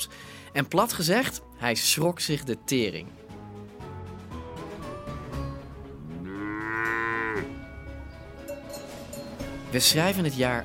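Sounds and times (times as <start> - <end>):
speech: 0.0 - 3.2, 9.7 - 10.6
cattle mooing: 6.0 - 7.6.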